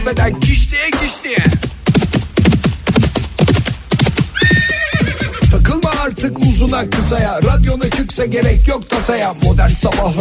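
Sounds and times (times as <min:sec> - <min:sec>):
speech: 0:00.1 - 0:01.8, 0:06.7 - 0:10.2
horses galloping hoofbeats: 0:00.1 - 0:08.8
horse whinnying: 0:04.3 - 0:05.6.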